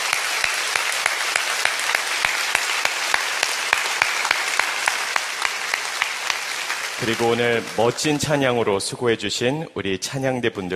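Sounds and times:
audience applause: 0.0s - 8.6s
speech: 7.0s - 10.7s.

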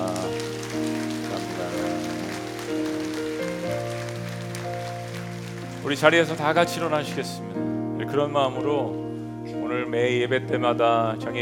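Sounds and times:
audience applause: 0.0s - 7.4s
sustained keyboard chords: 0.0s - 11.3s
speech: 5.9s - 9.0s, 9.7s - 11.3s.

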